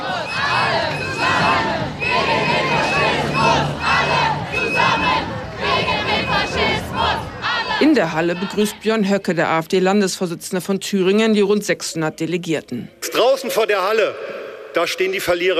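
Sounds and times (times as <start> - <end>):
large protest crowd outside a hall hosting an AfD state party conference shouting and chanting: 0.0 - 9.2
speech: 8.0 - 15.5.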